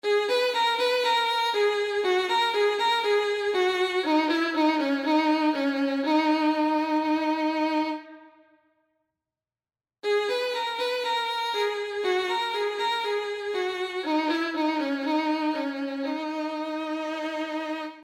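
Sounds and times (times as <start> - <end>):
violin: 0.0 - 8.4, 10.0 - 18.0.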